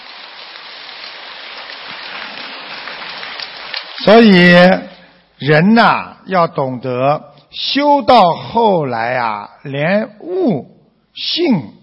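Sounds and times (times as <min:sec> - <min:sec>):
audience applauding: 0:00.0 - 0:04.1
speech: 0:04.0 - 0:11.8.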